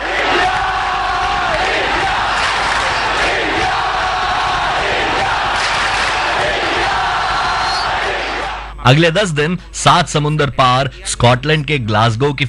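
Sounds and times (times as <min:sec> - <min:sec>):
large crowd chanting slogans: 0:00.0 - 0:08.8
speech: 0:08.8 - 0:12.4.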